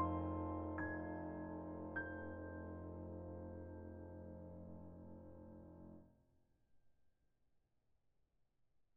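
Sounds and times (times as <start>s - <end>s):
FM tuner piano: 0.0s - 6.1s.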